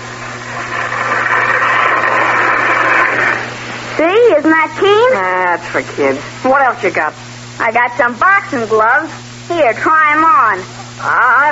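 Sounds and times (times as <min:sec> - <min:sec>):
toy electric train motor whirring: 0:00.0 - 0:03.5
low buzzing hum: 0:00.0 - 0:11.5
speech: 0:04.3 - 0:11.5.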